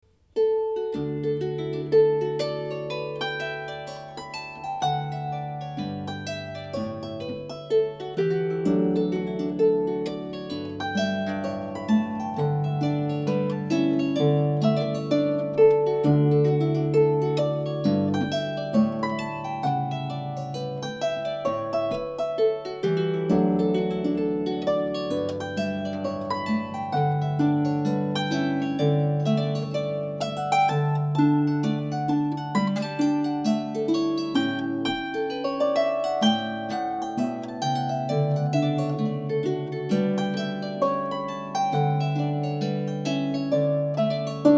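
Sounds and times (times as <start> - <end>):
harp: 0.0 - 44.5.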